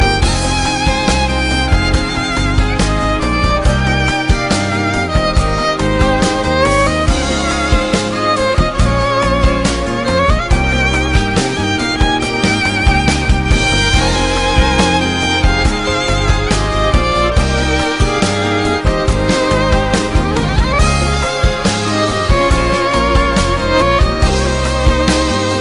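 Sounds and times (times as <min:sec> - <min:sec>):
romantic violin: 0:00.0 - 0:25.6.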